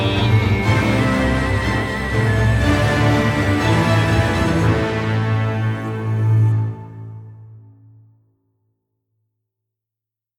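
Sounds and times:
strings: 0.0 - 7.8.

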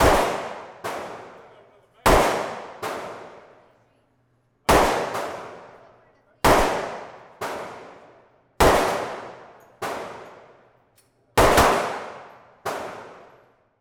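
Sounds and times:
45 handguns firing in a shootout: 0.0 - 1.5, 2.1 - 3.5, 4.7 - 5.8, 6.4 - 8.0, 8.6 - 10.5, 11.4 - 13.4.

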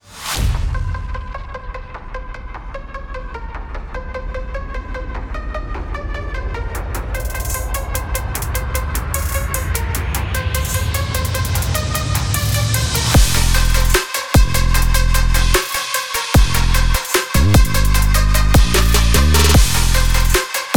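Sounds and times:
dubstep and trap music: 0.1 - 20.7.

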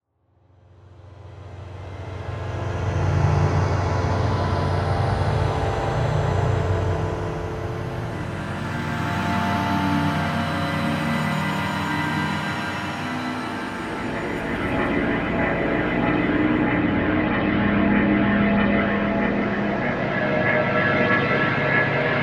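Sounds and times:
drones: 2.2 - 22.2.

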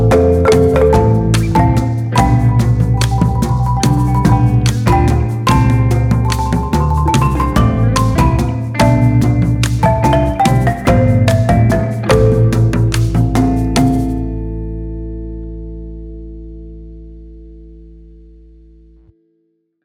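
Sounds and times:
marimba: 0.0 - 14.8.

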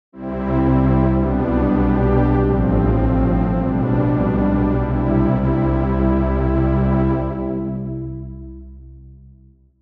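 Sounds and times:
Oberheim Matrix 12 bulbous synthesizer strings: 0.2 - 8.7.

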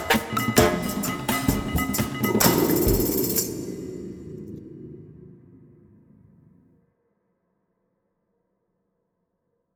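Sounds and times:
percussion sounds: 0.0 - 5.2.

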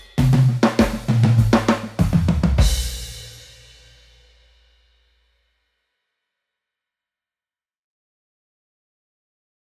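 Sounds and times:
rock drums: 0.0 - 3.8.

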